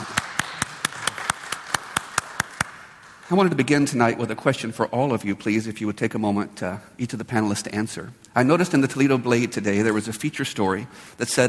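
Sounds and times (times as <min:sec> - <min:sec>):
hands clapping to welcome a panelist: 0:00.0 - 0:03.7
speech: 0:03.3 - 0:11.4.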